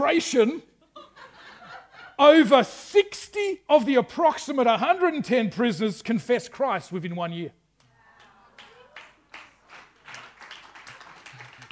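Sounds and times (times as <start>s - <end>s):
speech: 0.0s - 0.7s, 2.2s - 7.6s
laughter: 0.9s - 2.4s
audience clapping: 8.2s - 11.7s.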